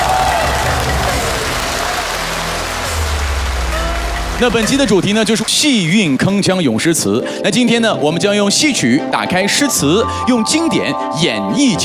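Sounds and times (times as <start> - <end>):
audience applause: 0.0 - 6.6
speech: 4.4 - 11.8.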